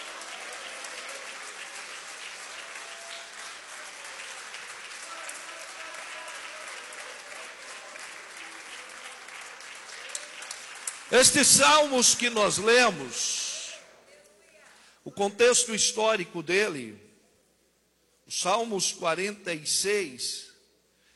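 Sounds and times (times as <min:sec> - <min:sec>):
audience applauding: 0:00.0 - 0:13.0
speech: 0:11.1 - 0:13.4, 0:15.2 - 0:17.1, 0:18.3 - 0:20.5.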